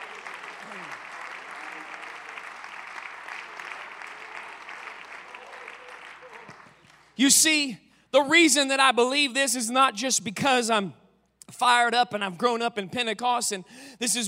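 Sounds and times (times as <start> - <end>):
audience clapping hands: 0.0 - 7.2
speech: 7.2 - 11.0, 11.6 - 14.2.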